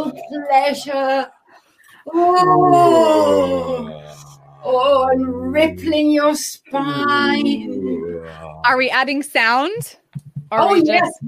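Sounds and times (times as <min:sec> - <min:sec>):
speech: 0:00.0 - 0:01.4, 0:02.0 - 0:11.2
person yawning: 0:02.2 - 0:06.0, 0:07.1 - 0:08.7.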